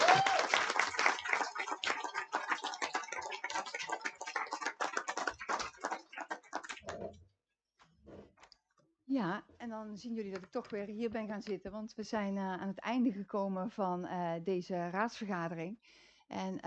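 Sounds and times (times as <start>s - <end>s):
audience applause: 0.0s - 7.0s
speech: 9.2s - 16.6s.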